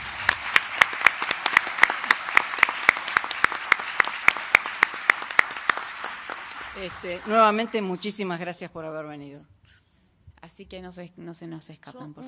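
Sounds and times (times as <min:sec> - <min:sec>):
audience applause: 0:00.0 - 0:08.0
speech: 0:06.8 - 0:09.6, 0:10.6 - 0:12.2.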